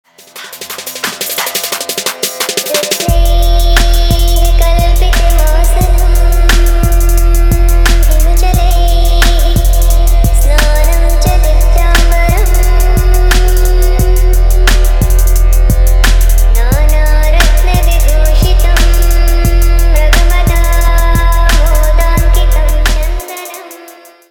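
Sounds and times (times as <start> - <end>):
Arabian trap ringtone: 0.2 - 24.3.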